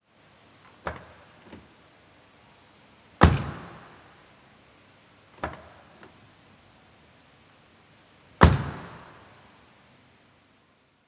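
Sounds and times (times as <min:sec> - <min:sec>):
Mercedes A-Class car door: 0:03.2 - 0:04.0, 0:08.4 - 0:09.1.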